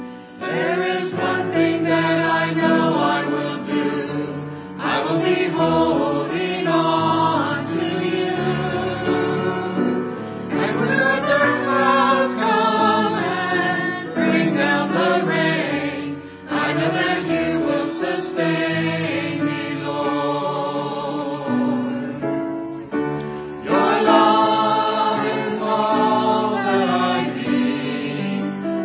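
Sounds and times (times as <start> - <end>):
choir singing: 0.4 - 28.8.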